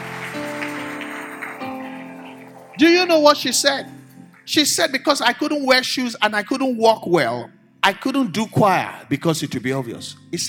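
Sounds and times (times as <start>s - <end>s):
audience applause: 0.0s - 3.9s
speech: 2.8s - 10.4s.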